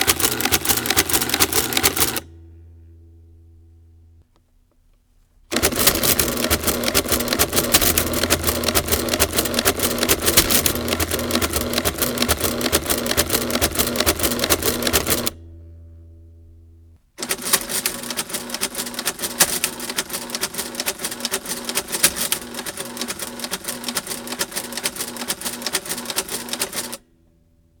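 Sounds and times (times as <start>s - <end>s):
Remington Rand adding machine: 0.0s - 2.4s, 5.5s - 15.4s, 17.2s - 27.0s.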